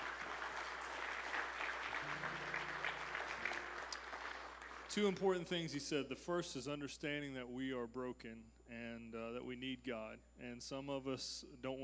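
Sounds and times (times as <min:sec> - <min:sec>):
audience applause: 0:00.0 - 0:05.2
speech: 0:05.0 - 0:11.8.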